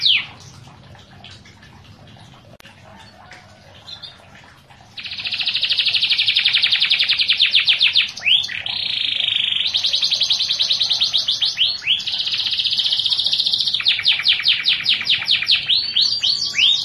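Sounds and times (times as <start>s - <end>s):
canary singing with buzzy rolling trill: 0.0s - 0.5s, 5.0s - 16.8s.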